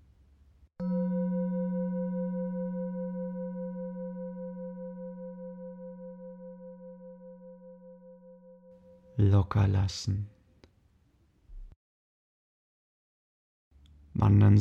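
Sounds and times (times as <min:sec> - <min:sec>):
singing bowl ringing: 0:00.8 - 0:09.2
speech: 0:09.2 - 0:10.4.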